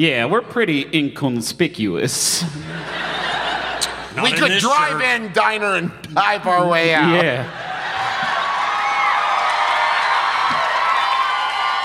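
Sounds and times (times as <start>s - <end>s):
speech: 0.0s - 3.1s, 3.8s - 7.6s
laughter: 2.3s - 5.2s
people cheering: 3.4s - 5.3s, 7.4s - 11.8s.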